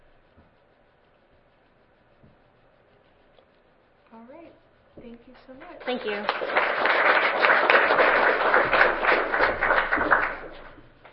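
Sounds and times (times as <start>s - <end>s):
speech: 4.2s - 8.0s
audience applause: 5.8s - 10.8s.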